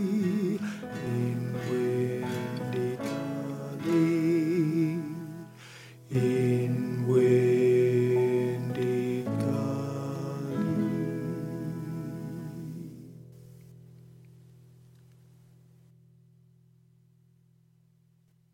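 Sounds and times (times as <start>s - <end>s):
person singing lead vocal: 0.0s - 13.3s.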